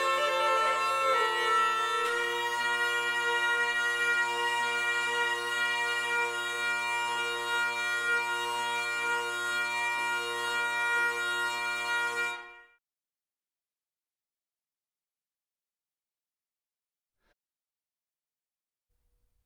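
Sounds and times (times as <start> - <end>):
hurdy-gurdy musette in C major: 0.0 - 12.7.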